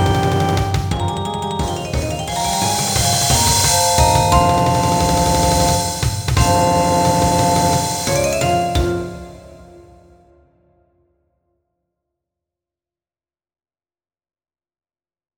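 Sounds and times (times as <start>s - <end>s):
percussion: 0.0s - 10.1s.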